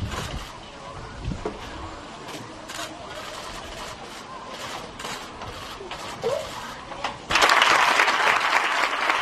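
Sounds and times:
applause after a minute of silence: 7.3s - 9.2s.

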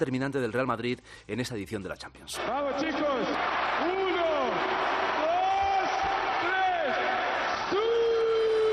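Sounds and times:
speech: 0.0s - 4.8s
Bernabéu stadium crowd chanting: 2.4s - 8.0s.

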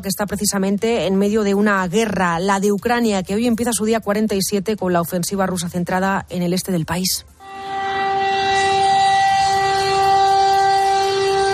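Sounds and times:
speech: 0.0s - 7.6s
air raid alarm siren in Dnipro: 7.4s - 11.5s.

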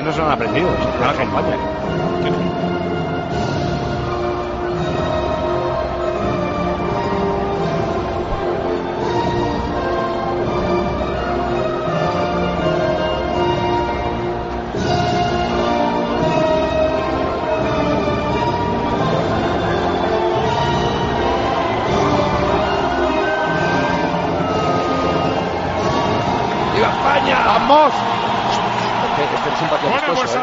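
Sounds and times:
national anthem played in a stadium: 0.0s - 30.4s
speech: 0.1s - 2.7s, 27.7s - 28.2s, 29.6s - 30.4s
stadium crowd roar: 4.4s - 30.4s.

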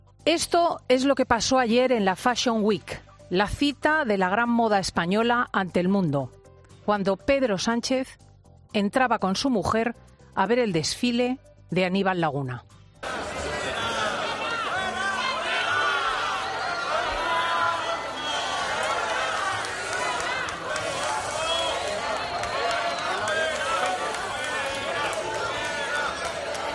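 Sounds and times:
speech: 0.2s - 12.8s
crowd booing: 13.0s - 26.7s.

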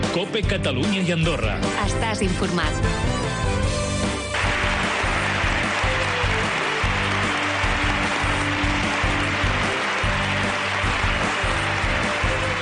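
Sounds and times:
speech: 0.2s - 3.1s
applause in the Assemblea de Madrid: 4.3s - 12.6s.

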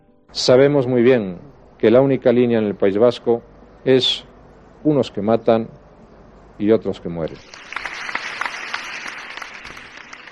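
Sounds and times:
speech: 0.3s - 5.8s, 6.6s - 7.6s
faint applause in a hall after a speech by José María Aznar: 7.4s - 10.3s.

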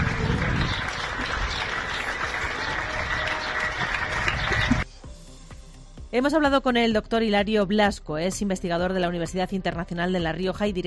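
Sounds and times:
neighbours applauding: 0.0s - 4.8s
speech: 6.2s - 10.8s.

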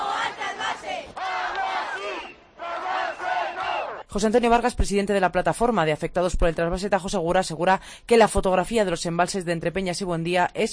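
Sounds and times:
crowd of protesters shouting chants: 0.0s - 4.0s
speech: 4.1s - 10.7s.

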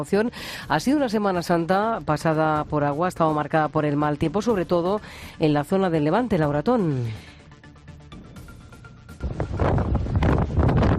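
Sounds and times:
speech: 0.0s - 7.4s
wind gusts over 80 km per hour on the Levante coast: 9.2s - 10.9s.

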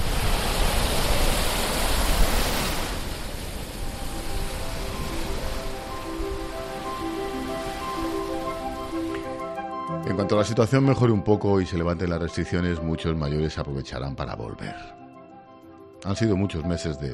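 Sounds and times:
Mediterranean sea waves: 0.0s - 10.3s
speech: 10.2s - 15.0s, 16.0s - 17.1s.

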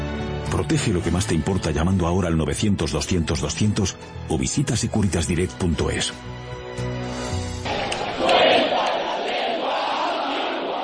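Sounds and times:
speech: 0.5s - 6.9s
Sevilla football fans cheering at the Ramón Sánchez Pizjuán stadium: 7.7s - 10.8s.

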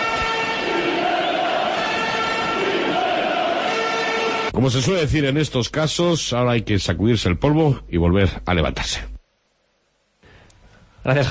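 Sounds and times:
fans chanting in arena: 0.0s - 4.5s
speech: 4.6s - 9.1s, 11.0s - 11.2s.

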